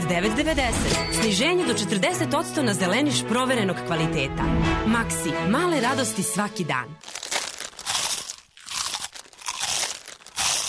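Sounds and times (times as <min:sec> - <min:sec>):
speech: 0:00.1 - 0:07.2
crunchy bites into a hazelnut-flavoured Banini snack: 0:07.0 - 0:10.6.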